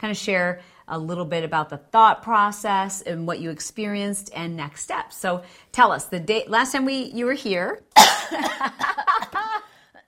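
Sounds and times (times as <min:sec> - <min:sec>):
speech: 0:00.0 - 0:09.7
nervous coughs and throat-clearing: 0:08.0 - 0:09.4
laughter: 0:08.6 - 0:09.7.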